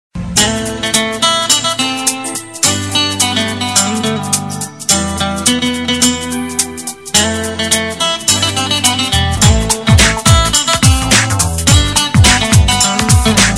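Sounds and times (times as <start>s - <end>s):
romantic instrumental ringtone: 0.2s - 13.5s.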